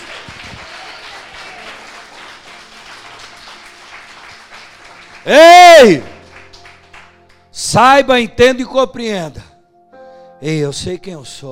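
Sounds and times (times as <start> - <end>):
audience applauding loudly: 0.0 - 7.4
speech: 5.2 - 6.1, 7.7 - 9.5, 10.4 - 11.5.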